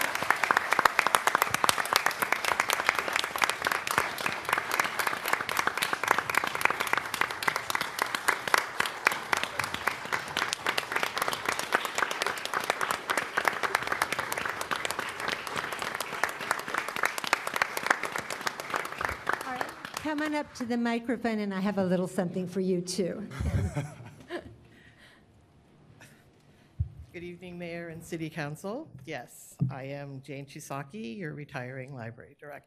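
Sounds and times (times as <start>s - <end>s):
crowd applauding: 0.0s - 20.8s
speech: 20.1s - 23.9s, 28.1s - 32.6s
laughter: 23.3s - 24.7s.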